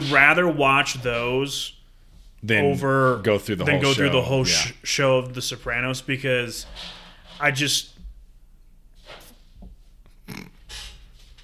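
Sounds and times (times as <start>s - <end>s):
speech: 0.0s - 1.8s, 2.4s - 8.0s
dog snorting and snuffling while chasing food: 10.1s - 11.1s.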